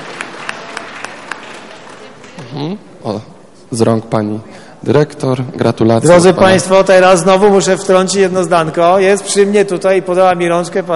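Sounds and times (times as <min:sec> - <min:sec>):
audience applause: 0:00.0 - 0:02.4
speech: 0:02.5 - 0:10.9.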